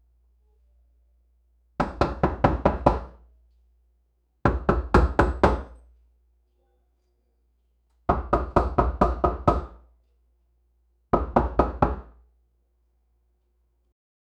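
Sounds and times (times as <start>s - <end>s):
loud knocking on front door: 1.8s - 3.2s, 4.5s - 5.8s, 8.1s - 9.8s, 11.1s - 12.2s.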